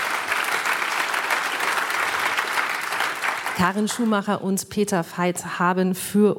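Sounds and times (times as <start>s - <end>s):
audience applause: 0.0s - 4.2s
speech: 3.6s - 6.3s.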